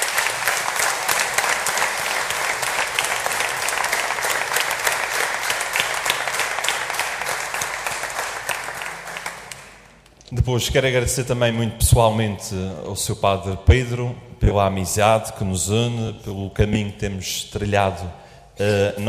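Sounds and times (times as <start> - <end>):
audience applause: 0.0 - 10.1
speech: 10.4 - 19.0.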